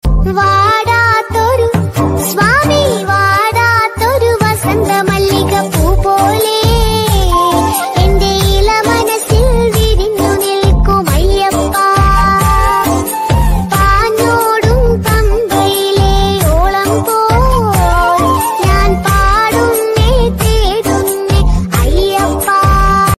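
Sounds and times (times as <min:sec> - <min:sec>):
Malayalam Ayyappa devotional ringtone: 0:00.1 - 0:23.1.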